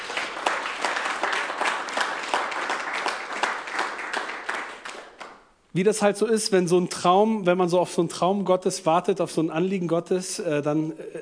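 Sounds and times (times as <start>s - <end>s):
audience applause: 0.0s - 5.4s
speech: 5.8s - 11.1s.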